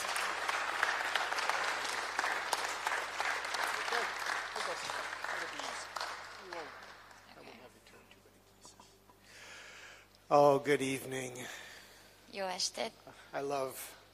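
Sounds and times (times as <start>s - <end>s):
audience applause: 0.0s - 7.6s
speech: 10.3s - 11.6s, 12.4s - 14.0s.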